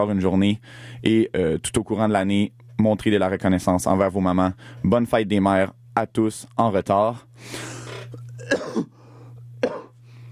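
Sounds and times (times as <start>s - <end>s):
speech: 0.0s - 9.0s
cough: 7.8s - 9.0s, 9.6s - 10.0s.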